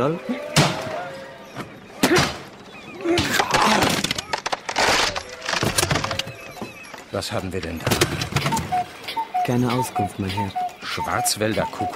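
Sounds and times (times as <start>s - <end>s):
speech: 0.0s - 0.8s, 7.1s - 8.6s, 9.5s - 11.9s
voices murmuring: 0.0s - 11.9s
wooden crate levered open with a crowbar: 3.2s - 6.3s.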